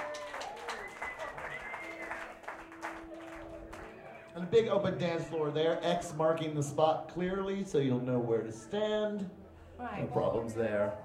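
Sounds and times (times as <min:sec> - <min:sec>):
audience applause: 0:00.0 - 0:04.4
speech: 0:04.4 - 0:11.0.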